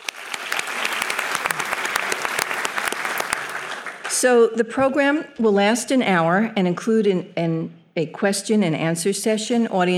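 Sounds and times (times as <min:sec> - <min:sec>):
audience applause in a hall at an evening program: 0:00.0 - 0:04.1
speech: 0:04.2 - 0:09.9.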